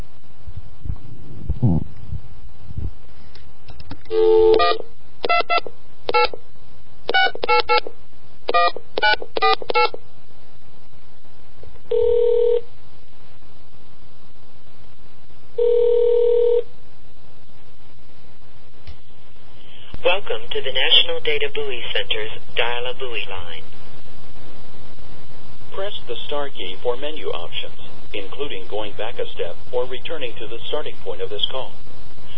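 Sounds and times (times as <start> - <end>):
faint steady hum: 0.0 - 32.3
speech: 4.1 - 5.7, 7.5 - 8.0, 8.6 - 10.1, 20.1 - 23.7, 25.7 - 31.8
long phone ringing tones: 4.1 - 6.4, 8.5 - 9.9, 11.9 - 12.6, 15.6 - 16.6.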